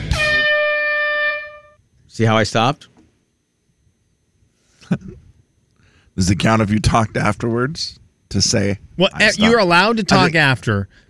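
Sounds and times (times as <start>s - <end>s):
game show buzzer: 0.0s - 1.8s, 9.2s - 10.4s
speech: 2.2s - 2.9s, 4.9s - 5.2s, 6.2s - 11.0s.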